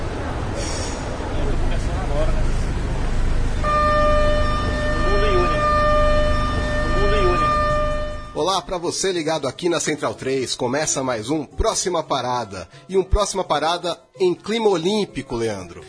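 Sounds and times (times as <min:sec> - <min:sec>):
train rumbling past: 0:00.0 - 0:08.4
train horn blast: 0:03.5 - 0:08.5
speech: 0:08.5 - 0:15.8.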